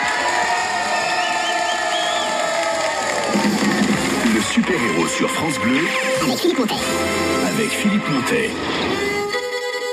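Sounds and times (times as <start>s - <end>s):
audience applause: 0.0s - 5.9s
speech: 4.7s - 9.2s.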